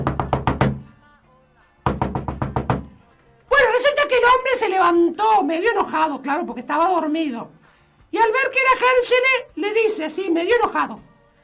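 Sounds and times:
knuckles knocking on the door of a man's house at night: 0:00.0 - 0:00.9, 0:01.8 - 0:03.0
speech: 0:04.6 - 0:11.1.

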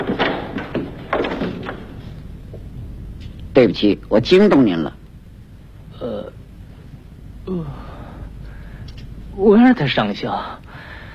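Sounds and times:
bedroom door being opened in a governor's residence: 0:00.0 - 0:02.7
speech: 0:03.6 - 0:05.0, 0:07.5 - 0:07.9, 0:09.4 - 0:10.7.

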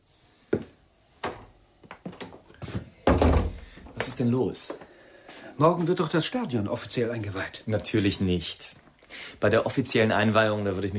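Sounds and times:
door being shut: 0:03.1 - 0:04.1
knocks and rattling clunks: 0:03.1 - 0:04.2
speech: 0:04.2 - 0:04.9, 0:05.6 - 0:10.9.

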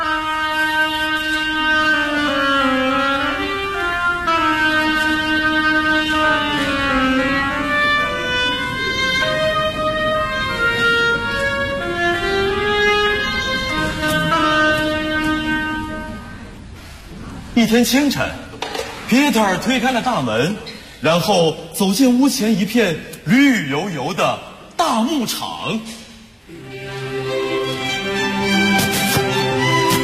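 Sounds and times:
oboe playing: 0:00.0 - 0:16.6, 0:26.5 - 0:30.0
speech: 0:17.6 - 0:18.4, 0:19.1 - 0:26.0.

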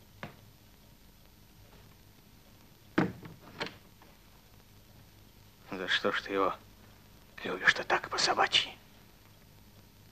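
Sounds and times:
door to a room closing in a radio drama: 0:03.0 - 0:03.8
speech: 0:05.8 - 0:06.7, 0:07.4 - 0:08.8.

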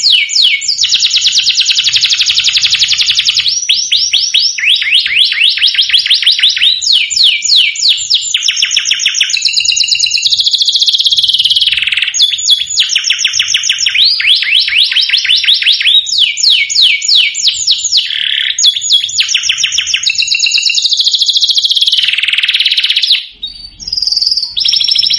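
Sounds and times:
domestic canary song: 0:00.0 - 0:25.1.

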